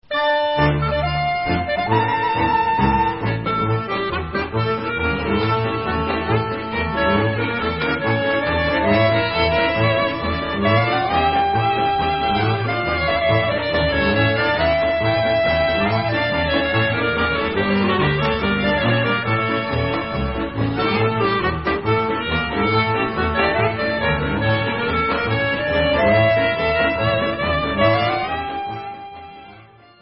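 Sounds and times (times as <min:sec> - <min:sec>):
Israeli folk dance instrumental music: 0:00.0 - 0:29.9.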